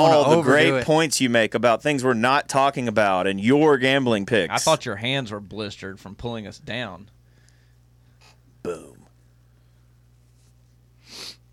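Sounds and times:
speech: 0.0 - 7.2, 8.6 - 8.9
sniff into a microphone: 11.0 - 11.4.

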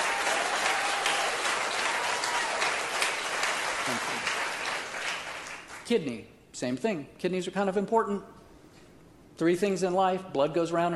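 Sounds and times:
doctors cheering: 0.0 - 2.8
doctors applauding: 0.0 - 5.8
speech: 3.9 - 4.1, 5.9 - 8.4, 9.4 - 10.9.

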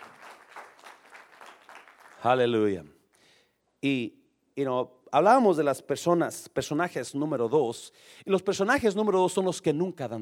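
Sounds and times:
audience applauding loudly: 0.0 - 2.5
speech: 2.2 - 3.0, 3.8 - 10.2.

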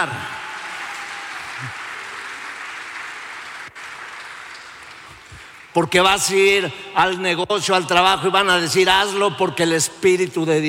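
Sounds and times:
speech: 0.0 - 0.4, 1.6 - 1.8, 5.8 - 10.6
faint crowd cheering: 0.0 - 5.3
audience applause: 0.0 - 5.7.

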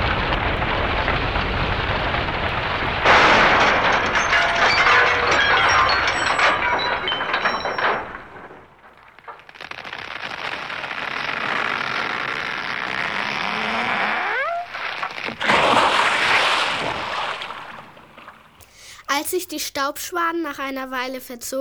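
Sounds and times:
crash into a tree with wood cracking: 0.0 - 18.6
soft rustling hiss: 18.6 - 21.5
speech: 19.4 - 21.5.

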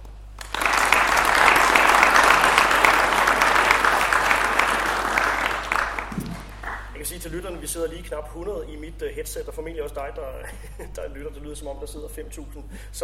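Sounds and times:
audience applause welcoming a guest: 0.4 - 7.0
speech: 7.3 - 13.0
laughter: 10.3 - 11.2.

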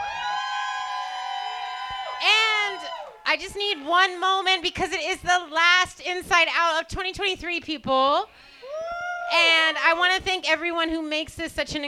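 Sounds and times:
crowd cheering and whooping: 0.0 - 3.9, 8.6 - 9.8
speech: 2.2 - 8.5, 9.3 - 11.8.

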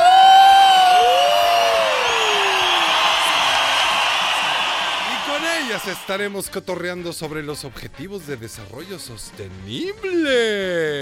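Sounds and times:
shrill whoops: 0.0 - 6.1
sliding whistle-like cry: 0.0 - 6.1
crowd applauding: 0.5 - 6.3
speech: 5.8 - 11.0.

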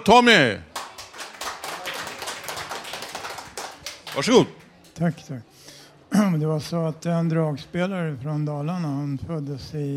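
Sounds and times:
speech: 0.0 - 0.7, 4.2 - 5.5, 6.1 - 9.9
audience applause: 0.8 - 4.4.

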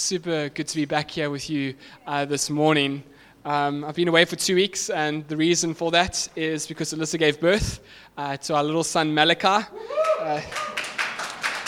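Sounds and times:
speech: 0.0 - 10.8
audience applause: 9.9 - 11.6.

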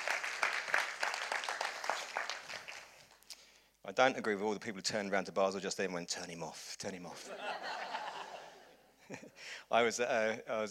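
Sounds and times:
audience applause: 0.0 - 3.0
speech: 3.9 - 7.8, 9.1 - 10.6
laughter: 7.2 - 9.4.

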